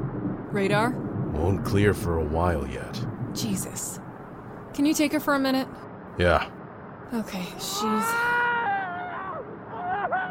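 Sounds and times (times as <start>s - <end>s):
speech: 0.5s - 4.1s, 4.8s - 8.3s
person screaming: 7.7s - 10.3s.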